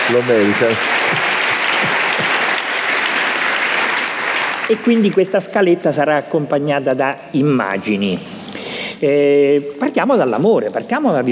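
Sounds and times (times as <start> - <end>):
audience clapping: 0.0 - 5.8
speech: 0.1 - 2.0, 4.7 - 8.4, 9.0 - 11.3.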